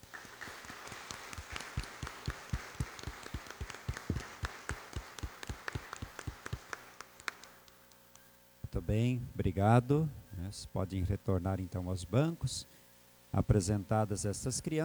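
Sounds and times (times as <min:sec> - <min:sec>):
audience applause: 0:00.0 - 0:07.6
speech: 0:08.8 - 0:14.8.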